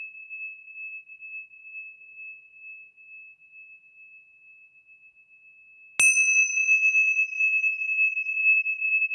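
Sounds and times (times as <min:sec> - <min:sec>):
Tibetan seven-metal tingshas 77 mm tuned in E ringing: 0:06.0 - 0:09.0.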